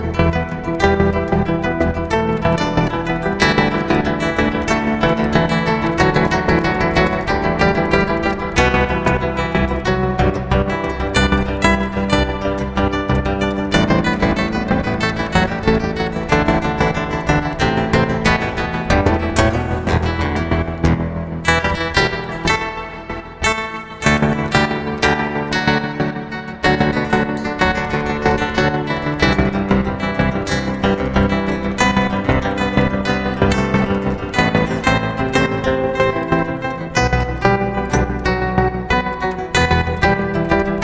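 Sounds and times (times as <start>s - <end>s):
meditative guitar improvisation: 0.0s - 40.8s.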